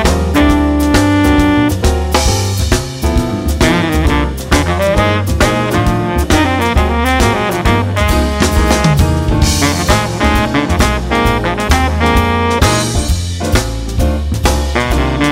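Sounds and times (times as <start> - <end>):
jazz blues with baritone sax soloist: 0.0 - 15.3.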